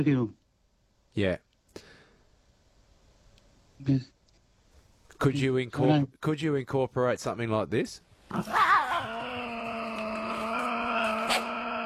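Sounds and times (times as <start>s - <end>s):
speech: 0.0s - 0.4s, 1.2s - 2.0s, 3.8s - 4.2s, 5.2s - 8.7s
Tasmanian devil growling: 8.3s - 11.8s.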